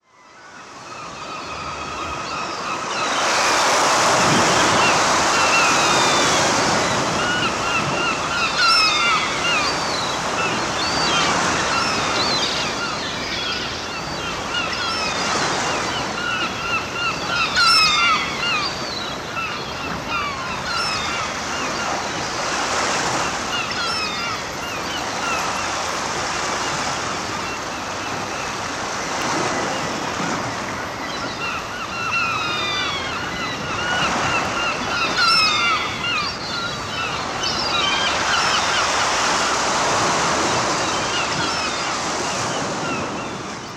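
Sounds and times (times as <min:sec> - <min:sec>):
seagulls calling: 0:00.1 - 0:43.7.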